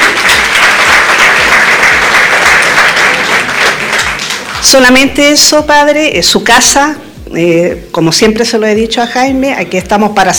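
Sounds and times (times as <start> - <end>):
audience applause: 0.0 - 4.7
speech: 4.6 - 10.3.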